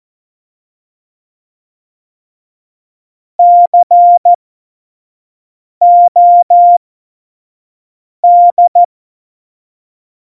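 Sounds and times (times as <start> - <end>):
CW Morse code tones at tempo 70: 3.4 - 4.4, 5.9 - 6.8, 8.3 - 8.9.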